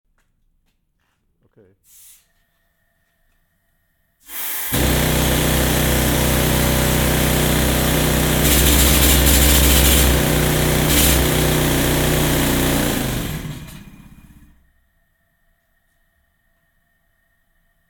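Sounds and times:
pneumatic jackhammer: 4.3 - 14.6.

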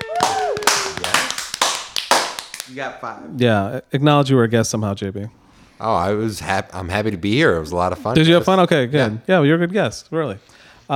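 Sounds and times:
applause: 0.0 - 2.8
speech: 2.7 - 10.9.

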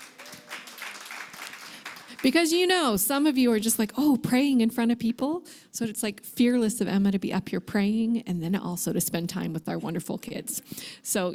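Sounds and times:
audience applause: 0.0 - 2.4
speech: 2.2 - 11.3.

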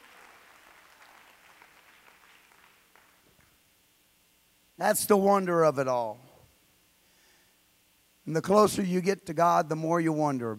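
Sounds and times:
audience clapping: 0.0 - 3.6
speech: 4.8 - 6.2, 8.2 - 10.5.

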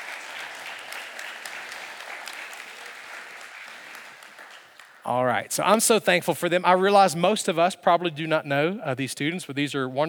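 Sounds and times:
audience applause welcoming two college students onto a stage: 0.0 - 5.3
speech: 5.0 - 10.0.

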